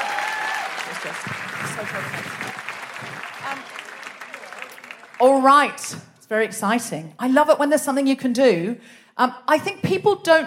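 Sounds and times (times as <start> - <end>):
audience applause: 0.0 - 5.7
speech: 0.9 - 3.9, 5.2 - 10.4.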